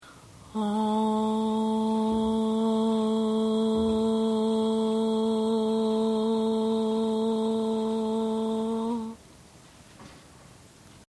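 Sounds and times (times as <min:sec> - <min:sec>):
falsetto voice sample: 0:00.5 - 0:09.2.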